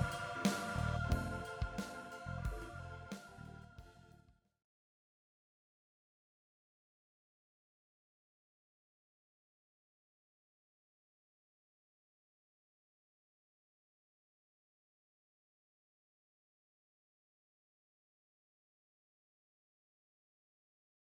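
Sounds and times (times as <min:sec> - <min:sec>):
drum break: 0:00.0 - 0:03.2
bass: 0:00.0 - 0:04.3.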